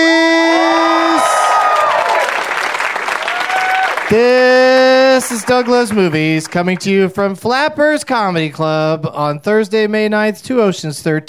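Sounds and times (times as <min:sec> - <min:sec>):
live audience clapping: 0:00.5 - 0:07.2
speech: 0:04.1 - 0:04.5, 0:05.3 - 0:11.2.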